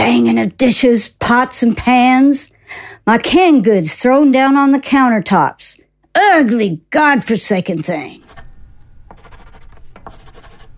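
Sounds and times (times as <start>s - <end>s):
speech: 0.2s - 8.2s
pencil scribbling on a piece of paper: 8.1s - 8.5s, 9.1s - 10.7s.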